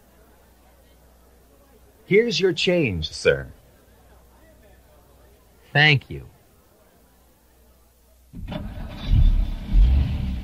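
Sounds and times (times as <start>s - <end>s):
speech: 2.1s - 3.6s, 5.8s - 6.4s
car engine starting and running on a windy night: 8.4s - 10.4s.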